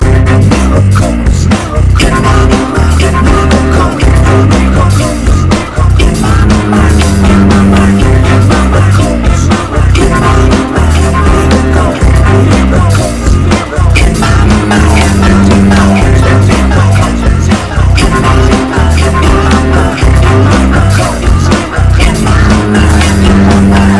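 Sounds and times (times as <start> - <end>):
rock music: 0.0 - 23.9.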